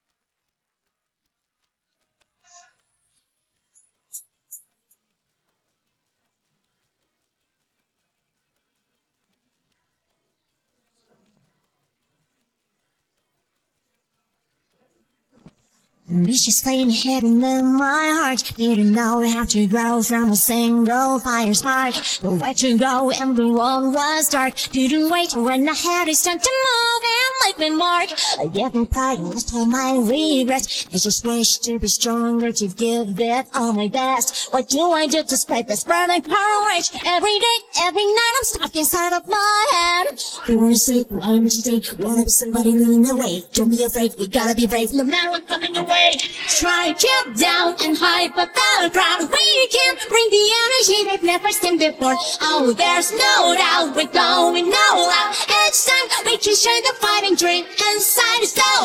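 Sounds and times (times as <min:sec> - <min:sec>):
English vocals: 0:14.6 - 0:58.8.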